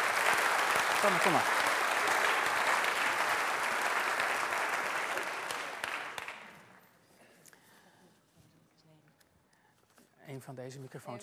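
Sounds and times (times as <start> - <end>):
audience applause: 0.0 - 6.7
speech: 1.0 - 1.6, 10.4 - 11.2.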